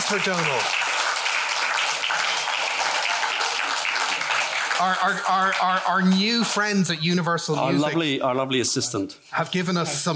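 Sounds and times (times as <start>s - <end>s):
crowd applauding: 0.0s - 7.2s
speech: 0.1s - 0.9s, 4.8s - 10.1s.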